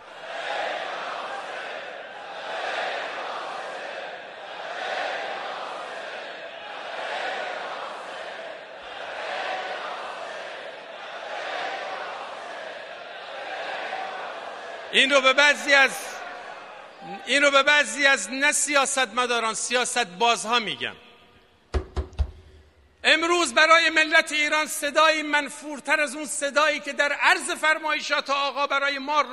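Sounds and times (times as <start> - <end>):
crowd chanting in unison: 0.0 - 17.3
speech: 15.0 - 16.1, 17.1 - 21.0, 23.1 - 29.3.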